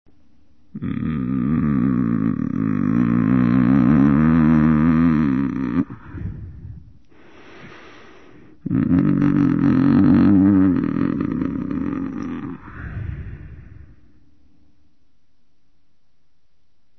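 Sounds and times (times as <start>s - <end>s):
humming: 0.7s - 7.2s, 8.6s - 14.0s.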